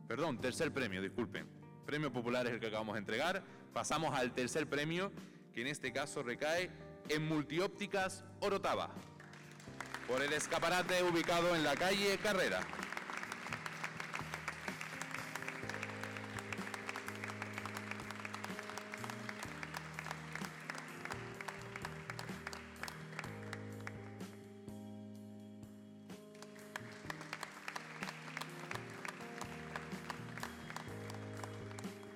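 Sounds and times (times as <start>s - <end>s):
speech: 0.1s - 9.1s, 10.1s - 12.8s
music with sustained tones: 8.2s - 32.1s
audience applause: 9.2s - 24.0s, 26.3s - 32.1s.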